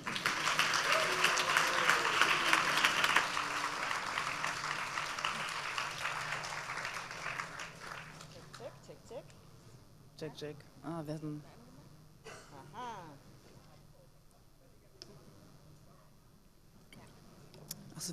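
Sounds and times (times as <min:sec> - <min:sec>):
audience applause: 0:00.0 - 0:08.7
speech: 0:10.3 - 0:11.6.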